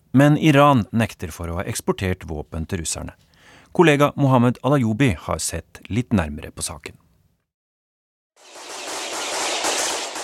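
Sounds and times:
speech: 0.2 - 7.0
explosion bang: 8.4 - 10.2
police gunfire at a drone: 8.4 - 10.2.

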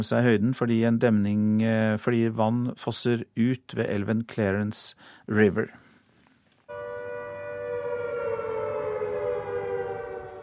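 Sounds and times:
speech: 0.0 - 5.8
civil defense alarm siren wailing: 6.7 - 10.4.

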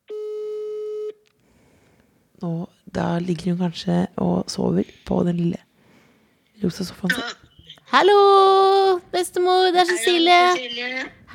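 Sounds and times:
phone ringing tone: 0.1 - 1.2
speech: 2.4 - 5.6, 6.6 - 11.2.

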